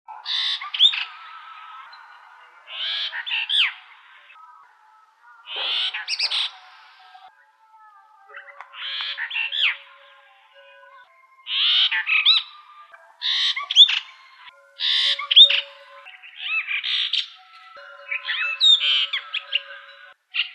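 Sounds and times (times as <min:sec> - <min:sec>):
Brahminy starling singing: 0:00.1 - 0:20.5.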